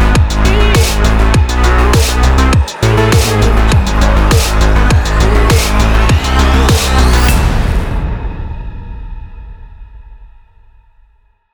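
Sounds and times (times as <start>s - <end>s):
techno music: 0.0s - 7.8s.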